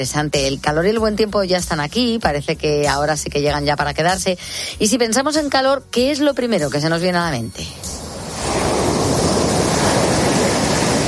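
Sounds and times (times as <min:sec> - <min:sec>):
speech: 0:00.0 - 0:08.0
ocean waves breaking on a beach: 0:07.8 - 0:11.0.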